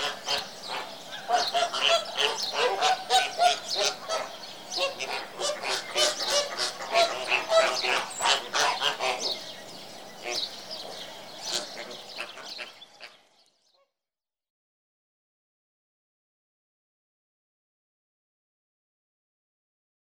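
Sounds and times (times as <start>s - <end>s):
flamingo flock honking and chatter: 0.0s - 9.6s, 10.2s - 13.2s.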